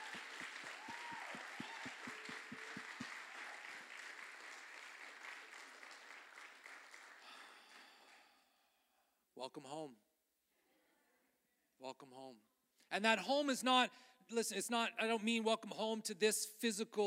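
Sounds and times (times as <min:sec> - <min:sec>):
audience applause: 0:00.0 - 0:08.1
speech: 0:09.4 - 0:10.1, 0:11.8 - 0:17.0.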